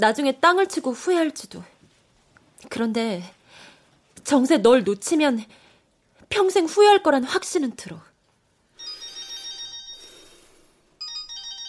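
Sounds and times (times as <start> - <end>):
speech: 0.0 - 1.7, 2.6 - 3.4, 4.2 - 5.6, 6.3 - 8.1
mobile phone ringtone: 8.8 - 11.6.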